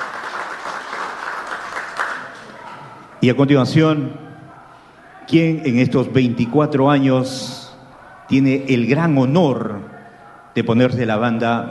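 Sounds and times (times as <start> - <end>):
crowd applause: 0.0 - 3.1
speech: 3.2 - 4.2, 5.3 - 7.6, 8.3 - 9.9, 10.6 - 11.6.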